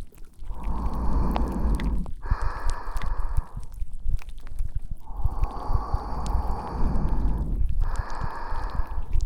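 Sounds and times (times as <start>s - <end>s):
ASMR tentacle ear cleaning: 0.5s - 3.7s, 5.0s - 9.2s.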